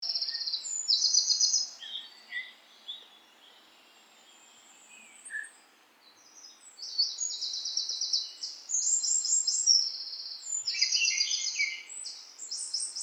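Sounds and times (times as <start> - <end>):
bird song with dense high buzzy trills and rapid chattering: 0.1 - 13.0.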